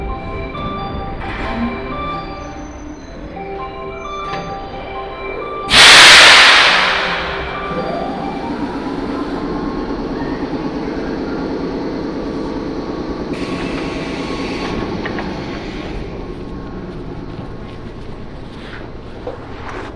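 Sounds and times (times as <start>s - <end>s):
Sanyo Main Line train carriage rumble: 0.0s - 19.9s
sudden loud hiss: 5.7s - 7.9s.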